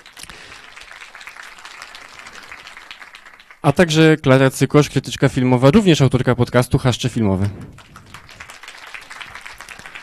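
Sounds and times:
crowd applauding: 0:00.0 - 0:04.0, 0:07.5 - 0:10.0
speech: 0:03.6 - 0:08.0.

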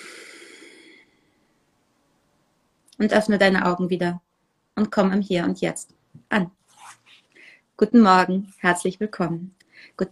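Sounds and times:
deep breath in and out during a guided meditation: 0:00.0 - 0:01.5, 0:07.3 - 0:07.7, 0:09.7 - 0:10.0
speech: 0:03.0 - 0:06.6, 0:07.8 - 0:10.1.

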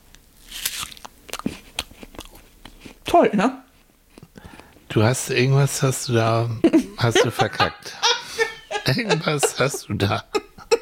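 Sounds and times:
crunchy bites into a crunchy apple: 0:00.1 - 0:03.0
speech: 0:03.1 - 0:03.6, 0:05.0 - 0:08.1, 0:08.9 - 0:10.4
laughter: 0:06.6 - 0:10.8.

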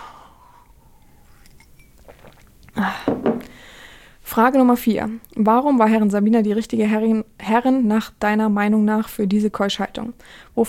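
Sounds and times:
person slurping a drink: 0:01.0 - 0:02.8
speech: 0:02.8 - 0:03.2, 0:04.4 - 0:10.6.

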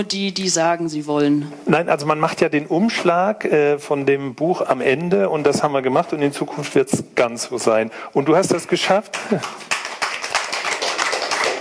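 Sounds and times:
speech: 0:00.0 - 0:09.8
restrained clapping from a small audience: 0:08.9 - 0:11.5.

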